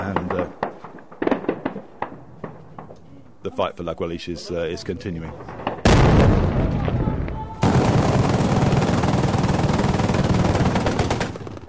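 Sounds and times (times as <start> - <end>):
homemade long-tubed artillery gun on a pickup truck fired by rebel forces: 0.0 - 2.9, 5.5 - 11.6
speech: 3.6 - 5.6.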